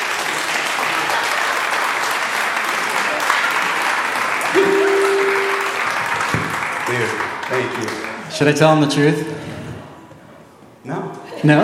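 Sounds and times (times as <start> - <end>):
audience applause: 0.0 - 8.3
speech: 7.6 - 9.4, 10.8 - 11.6.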